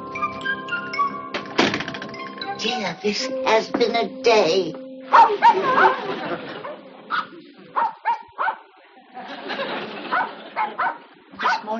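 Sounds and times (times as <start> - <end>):
speech: 2.6 - 7.3
dog barking: 5.1 - 8.7, 10.1 - 11.7
laughter: 5.2 - 7.8, 8.9 - 11.1.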